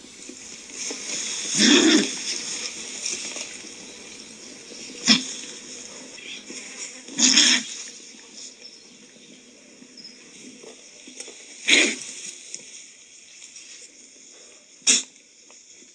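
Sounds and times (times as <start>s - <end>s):
condor hissing and snorting: 1.5s - 2.4s, 5.0s - 7.8s, 11.6s - 12.2s.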